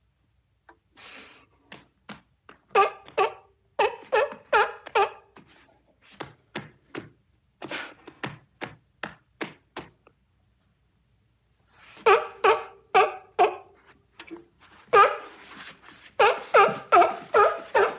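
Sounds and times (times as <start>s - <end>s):
seal giving loud rough barks: 2.7s - 5.2s, 12.0s - 13.8s, 14.9s - 15.4s, 16.2s - 17.9s.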